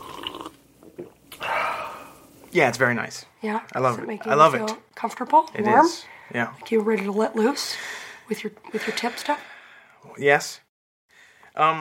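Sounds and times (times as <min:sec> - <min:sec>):
person sipping a cocktail: 0:00.0 - 0:02.5
speech: 0:02.5 - 0:09.5, 0:10.1 - 0:10.6, 0:11.6 - 0:11.8.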